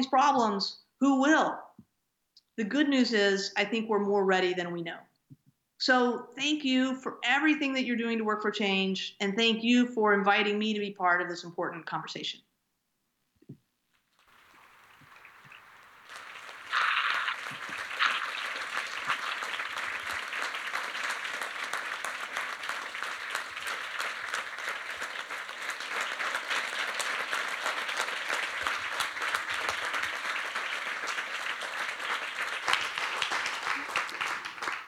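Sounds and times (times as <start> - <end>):
speech: 0.0 - 1.7, 2.6 - 5.1, 5.8 - 12.5
audience applause: 14.3 - 34.8.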